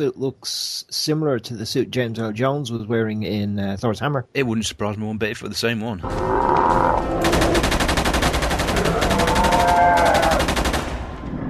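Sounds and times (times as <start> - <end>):
speech: 0.0 - 7.8
gunfire sound effect: 7.2 - 11.2.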